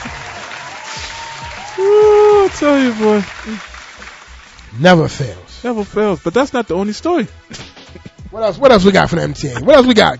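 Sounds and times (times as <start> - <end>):
applause: 0.0 - 4.7
speech: 1.8 - 2.0, 2.6 - 3.7, 4.8 - 7.6, 8.3 - 10.1.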